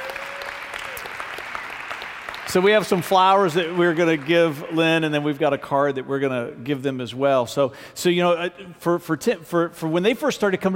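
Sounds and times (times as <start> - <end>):
audience clapping: 0.0 - 5.3
speech: 2.5 - 10.7.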